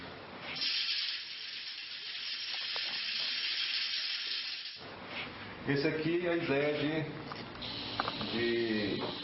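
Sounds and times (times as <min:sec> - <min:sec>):
rain stick instrument: 0:00.5 - 0:04.8
speech: 0:05.7 - 0:07.3, 0:08.3 - 0:09.2.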